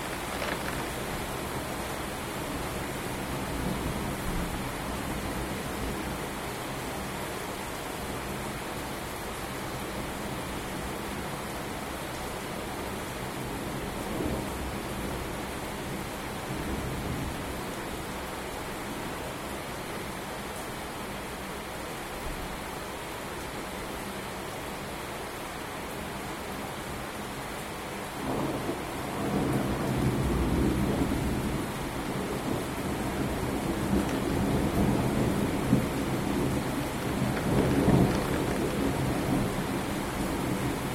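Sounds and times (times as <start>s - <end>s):
rumbling at home: 0.0s - 1.4s, 37.0s - 39.6s
rain at home: 0.0s - 40.9s.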